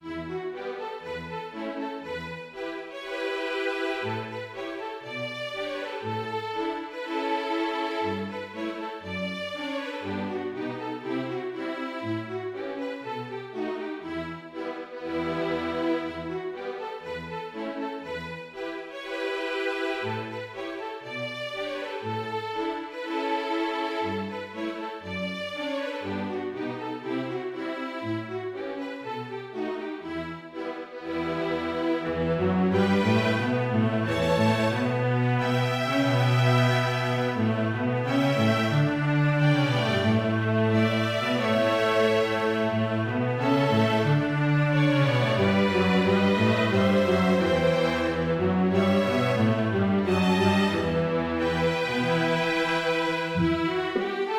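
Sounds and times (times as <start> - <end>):
string orchestra playing: 0.0 - 54.3.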